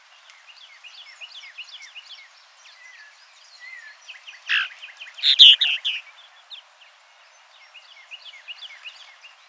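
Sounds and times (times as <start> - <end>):
purple martin Progne subis chattering song: 4.5 - 6.0.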